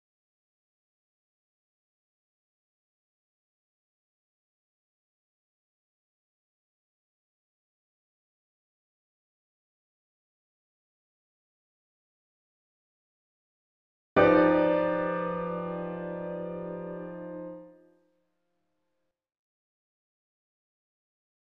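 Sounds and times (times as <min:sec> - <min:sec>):
latin etude on piano: 0:14.2 - 0:17.8.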